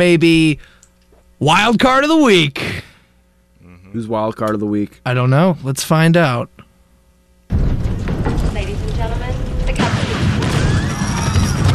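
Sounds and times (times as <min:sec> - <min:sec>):
speech: 0:00.0 - 0:00.8, 0:01.4 - 0:02.9, 0:03.9 - 0:06.6
crackling debris: 0:07.5 - 0:11.7
plane crash sound effect: 0:07.5 - 0:11.7.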